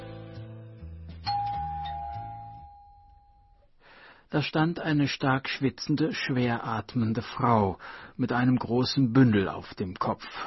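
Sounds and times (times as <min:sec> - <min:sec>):
doorbell chime: 0:01.2 - 0:03.7
speech: 0:04.3 - 0:10.4.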